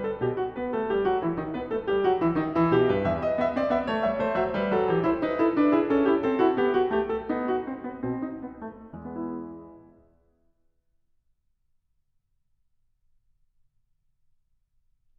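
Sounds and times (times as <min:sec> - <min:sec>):
keyboard fugue in E minor: 0:00.0 - 0:10.2.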